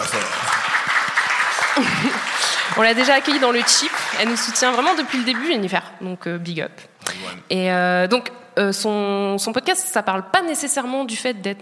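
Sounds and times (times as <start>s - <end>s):
laughter: 0.0s - 3.1s
crowd applauding: 0.0s - 5.8s
speech: 1.8s - 2.2s, 2.8s - 11.5s.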